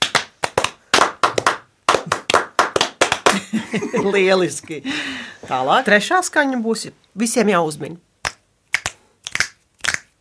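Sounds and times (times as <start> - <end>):
hand clapping: 0.0 - 3.6, 8.2 - 10.2
laughter: 3.3 - 4.8
speech: 3.7 - 8.1.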